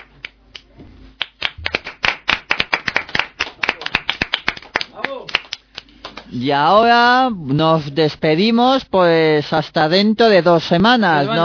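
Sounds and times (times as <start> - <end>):
applause: 1.2 - 6.3
speech: 6.3 - 11.4.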